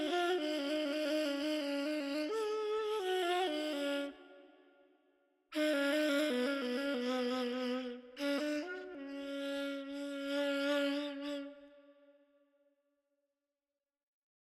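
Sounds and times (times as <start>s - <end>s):
ney flute in Dastgah Homayun: 0.0s - 4.6s, 5.5s - 11.8s.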